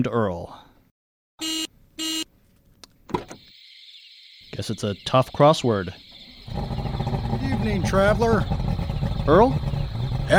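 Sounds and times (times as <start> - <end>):
speech: 0.0 - 0.6, 4.6 - 8.6, 9.2 - 9.7
car horn honking: 1.4 - 2.3.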